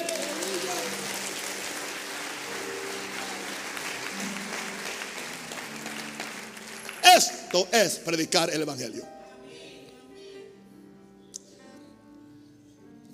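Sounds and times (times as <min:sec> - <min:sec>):
audience applauding: 0:00.0 - 0:08.3
speech: 0:07.2 - 0:09.2.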